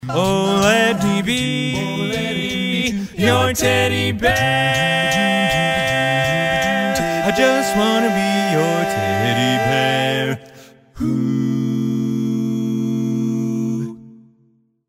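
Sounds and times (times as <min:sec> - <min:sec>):
barbershop tags sung by all parts: 0:00.0 - 0:14.0.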